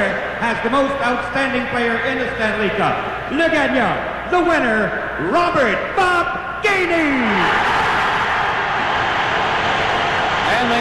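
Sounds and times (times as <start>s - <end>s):
speech: 0.0s - 7.8s
loud roar from hockey arena crowd: 6.6s - 10.7s.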